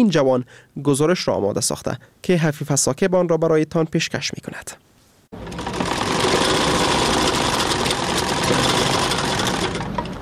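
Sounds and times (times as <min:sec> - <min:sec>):
speech: 0:00.0 - 0:05.6
sewing machine running in a tailor's shop: 0:05.4 - 0:10.2.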